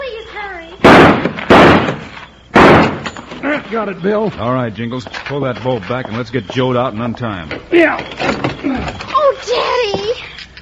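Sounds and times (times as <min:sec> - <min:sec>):
gunshots fired to blast the lock off a door: 0:00.8 - 0:03.2
speech: 0:03.5 - 0:10.3.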